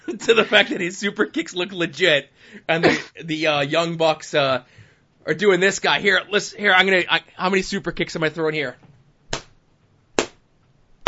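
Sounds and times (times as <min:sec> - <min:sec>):
laughter: 0:00.0 - 0:02.0
speech: 0:00.1 - 0:08.8
hand slapping thigh: 0:09.3 - 0:09.6, 0:10.2 - 0:10.4.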